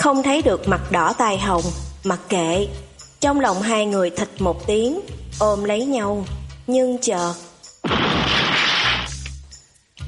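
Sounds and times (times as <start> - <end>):
speech: 0.0 - 8.0
wooden bed collapsing as two people and a wooden plank fall: 7.8 - 9.3.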